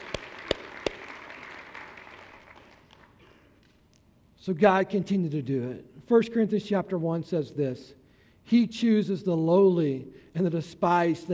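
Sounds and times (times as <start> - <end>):
audience hand clapping: 0.0 - 3.4
speech: 4.4 - 11.3.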